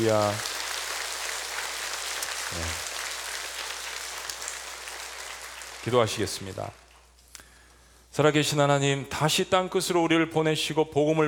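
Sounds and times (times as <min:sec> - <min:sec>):
speech: 0:00.0 - 0:00.5, 0:02.5 - 0:02.8, 0:05.8 - 0:06.8, 0:08.2 - 0:11.2
audience applause: 0:00.0 - 0:06.9.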